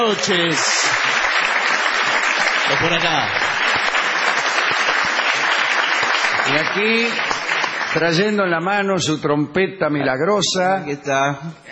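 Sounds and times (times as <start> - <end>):
speech: 0.0 - 1.2, 2.7 - 3.4, 6.5 - 7.3, 7.9 - 11.6
audience ovation in a small warehouse venue on Gorriti Street: 0.0 - 8.7.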